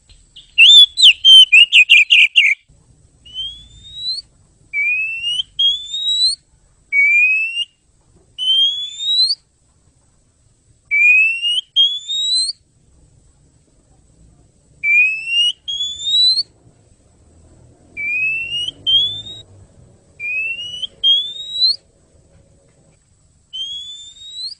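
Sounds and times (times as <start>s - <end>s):
bird whistling bright pure notes: 0.4s - 2.6s, 3.3s - 7.7s, 8.4s - 9.4s, 10.9s - 12.6s, 14.8s - 16.5s, 18.0s - 19.4s, 20.2s - 21.8s, 23.5s - 24.5s.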